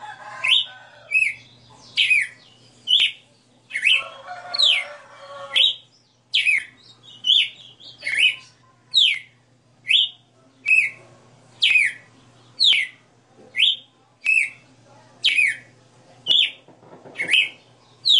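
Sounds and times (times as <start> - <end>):
female red-cowled cardinal singing whistled phrases: 0.4 - 4.0, 5.6 - 11.0, 11.6 - 13.0, 13.6 - 14.6, 15.2 - 15.7, 16.3 - 16.6, 17.2 - 18.1.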